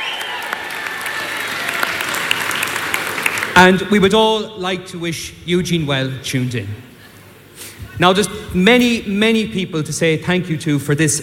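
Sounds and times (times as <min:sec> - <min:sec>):
audience applause: 0:00.0 - 0:03.6
speech: 0:03.6 - 0:06.9, 0:08.0 - 0:11.2.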